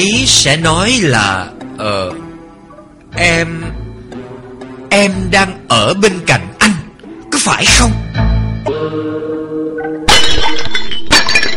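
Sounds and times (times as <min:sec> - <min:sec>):
speech: 0:00.0 - 0:02.2, 0:03.1 - 0:03.8, 0:04.9 - 0:06.5, 0:07.4 - 0:09.3
empty beer bottle dropping to the floor and smashing: 0:10.0 - 0:11.5
scattering shards and tinkling fragments: 0:10.1 - 0:11.5.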